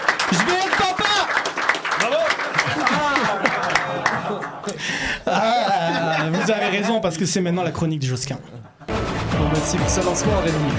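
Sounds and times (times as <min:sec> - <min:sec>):
audience applause: 0:00.0 - 0:05.0
speech: 0:00.3 - 0:00.8, 0:06.5 - 0:08.7, 0:09.4 - 0:10.7
laughter: 0:02.4 - 0:07.5, 0:08.2 - 0:09.0.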